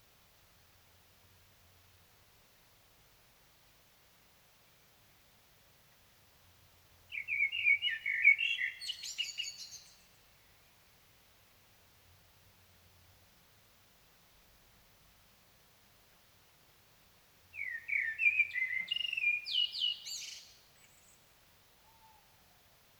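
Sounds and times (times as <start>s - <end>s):
Common blackbird singing: 7.1s - 10.0s, 17.5s - 21.3s.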